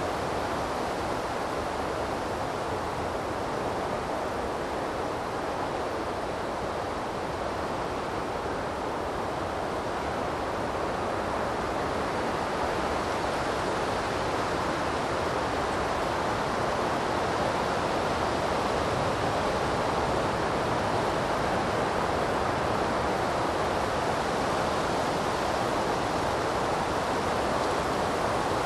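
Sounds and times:
river flowing in a forest: 0.0s - 28.6s.

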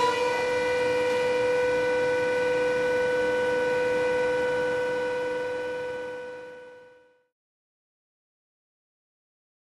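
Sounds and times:
forest warning signal: 0.1s - 7.2s.

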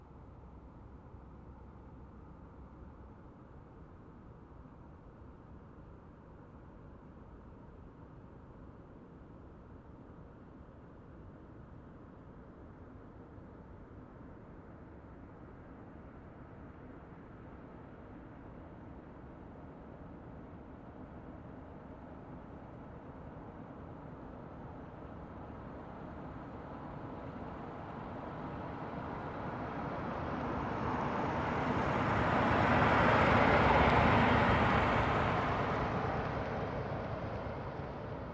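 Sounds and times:
truck passing by slowly: 23.7s - 38.3s.

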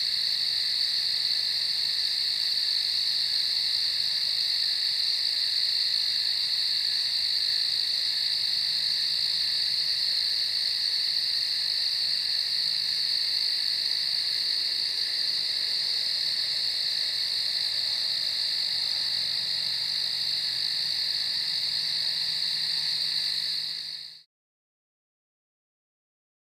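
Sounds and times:
crickets trilling: 0.0s - 24.2s.

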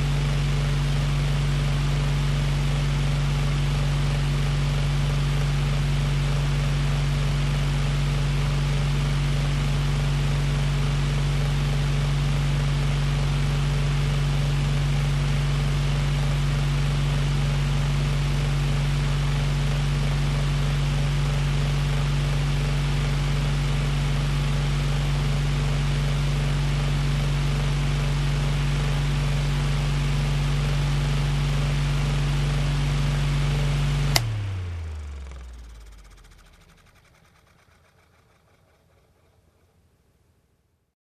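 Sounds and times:
fan running: 0.0s - 39.8s.

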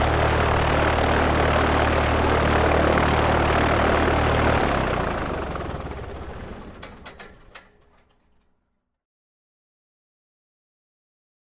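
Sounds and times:
light aircraft engine hard start: 0.0s - 8.6s.

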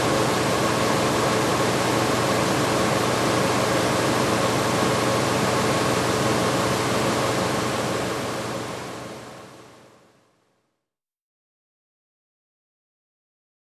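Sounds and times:
exhaust machine running: 0.0s - 9.3s.

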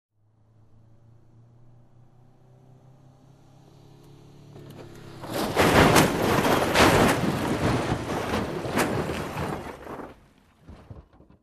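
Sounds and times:
car approaching: 0.1s - 9.4s
car crash: 4.5s - 11.4s.

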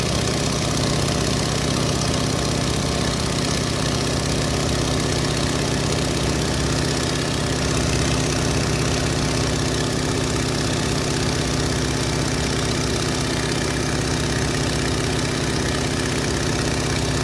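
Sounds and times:
light aircraft engine idling: 0.0s - 17.2s.

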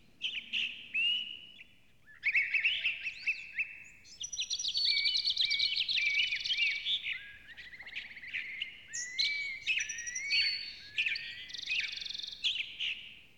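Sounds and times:
bird song of high chirps, trills and whistled slurs: 0.0s - 13.3s.

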